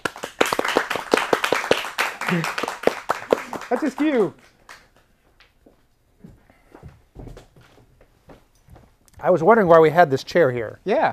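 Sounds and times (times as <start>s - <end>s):
audience clapping: 0.0s - 5.5s
speech: 2.3s - 2.7s, 3.7s - 4.4s, 9.2s - 11.1s.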